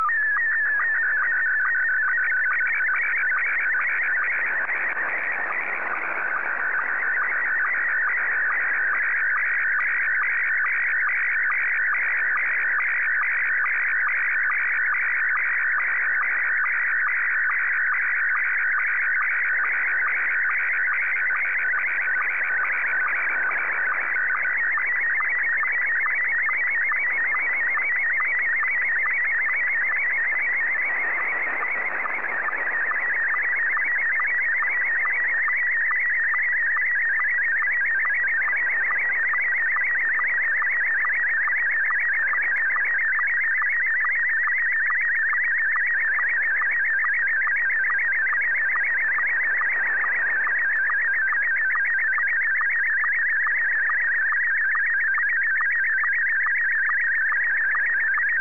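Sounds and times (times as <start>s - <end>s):
SSTV signal: 0.0s - 58.3s.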